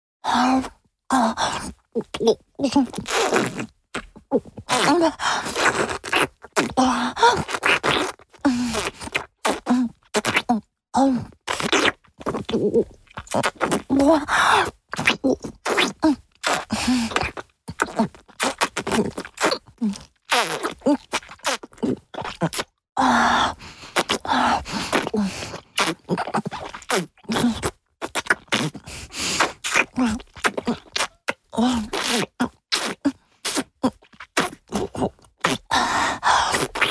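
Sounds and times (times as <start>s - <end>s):
sucking mouth sounds with treble suppressed: 0.6s - 36.8s.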